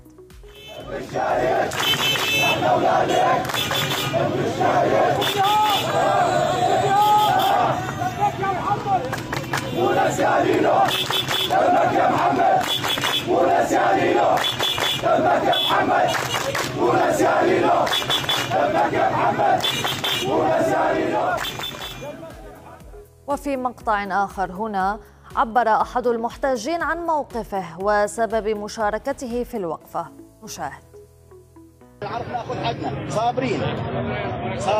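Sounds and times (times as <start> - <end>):
protest crowd chanting slogans: 0.6 - 22.8
speech: 0.9 - 6.3, 9.0 - 21.6, 23.3 - 30.9, 32.0 - 34.7.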